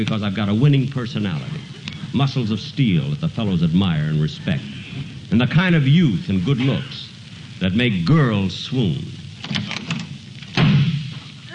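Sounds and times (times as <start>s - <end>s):
speech: 0.0s - 9.7s
door slamming: 9.4s - 11.3s.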